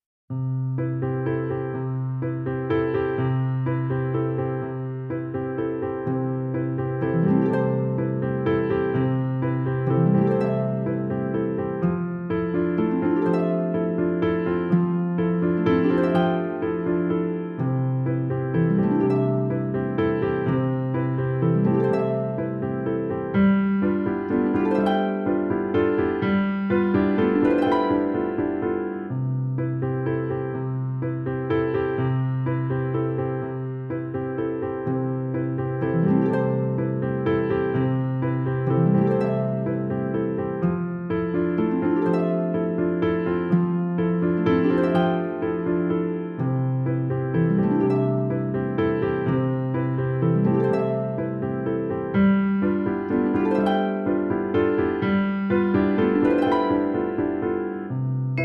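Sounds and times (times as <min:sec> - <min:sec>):
instrumental waltz: 0:00.8 - 0:58.4.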